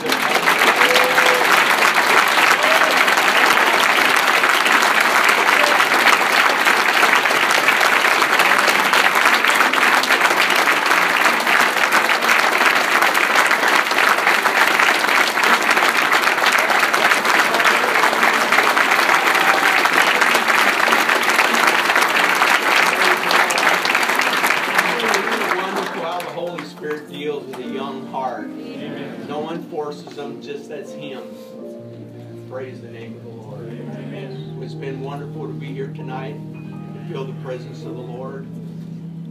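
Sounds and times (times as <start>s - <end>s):
audience applause for children's choir: 0.0s - 27.8s.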